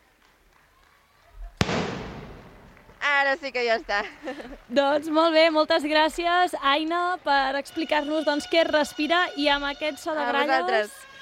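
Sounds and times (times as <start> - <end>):
festival rocket bang with crackle: 1.6 - 3.2
speech: 3.2 - 11.0.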